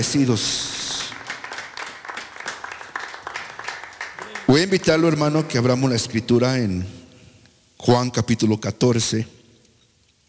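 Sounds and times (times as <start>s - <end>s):
speech: 0.0s - 0.8s, 4.5s - 7.0s, 7.8s - 9.4s
audience clapping hands: 0.0s - 5.5s.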